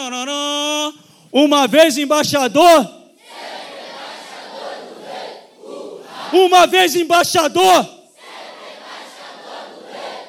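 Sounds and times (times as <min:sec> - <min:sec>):
speech: 0:00.0 - 0:00.4, 0:01.0 - 0:03.0, 0:06.3 - 0:08.0
crowd shouting a battle cry: 0:03.2 - 0:06.5, 0:08.2 - 0:10.2.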